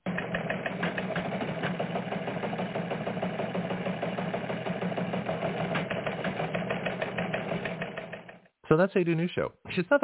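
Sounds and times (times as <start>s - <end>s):
teletype machine clattering: 0.1s - 8.3s
speech: 8.7s - 10.0s.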